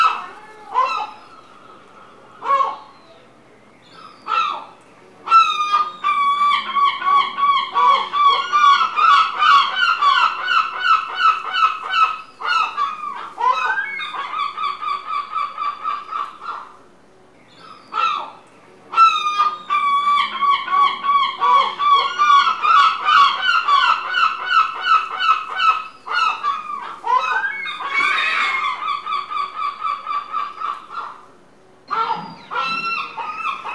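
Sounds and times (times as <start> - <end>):
seagulls calling in a rural exterior: 0.0 - 3.4, 5.3 - 16.8, 17.6 - 31.3, 31.9 - 33.7.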